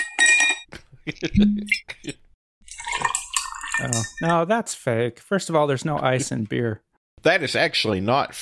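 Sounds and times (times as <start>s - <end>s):
glass clinking: 0.0s - 0.7s, 2.7s - 4.4s
speech: 1.1s - 2.2s, 3.8s - 8.3s
moonshine pouring into a glass: 2.6s - 4.3s.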